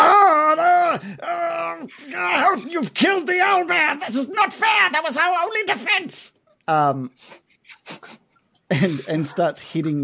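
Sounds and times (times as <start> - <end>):
voice imitating a hobgoblin's yell: 0.0 - 2.7
speech: 1.8 - 10.0.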